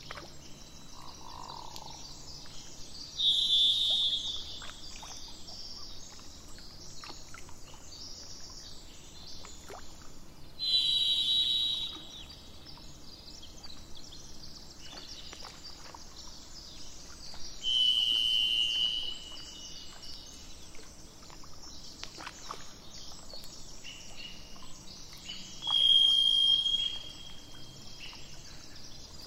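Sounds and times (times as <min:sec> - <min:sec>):
thrush whistling: 0:03.2 - 0:04.5, 0:10.6 - 0:12.2, 0:17.6 - 0:19.3, 0:25.6 - 0:27.5.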